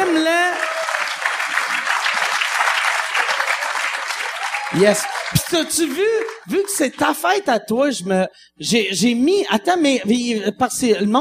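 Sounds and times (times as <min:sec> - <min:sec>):
audience applauding: 0:00.0 - 0:07.3
speech: 0:04.8 - 0:11.1.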